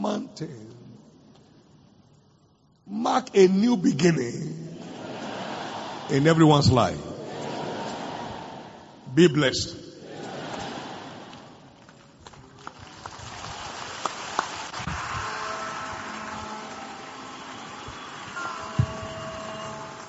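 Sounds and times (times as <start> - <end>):
speech: 0.0 - 0.8, 2.9 - 4.6, 6.1 - 7.1, 9.2 - 9.8
laughter: 4.7 - 8.8, 10.0 - 11.7
audience clapping: 10.2 - 20.0.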